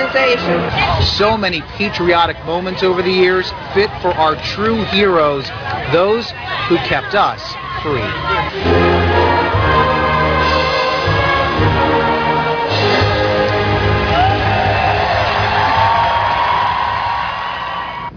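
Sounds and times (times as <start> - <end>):
large crowd cheering: 0.0 - 18.1
speech: 0.1 - 8.9
sustained tonal chant-like layers: 8.2 - 16.4.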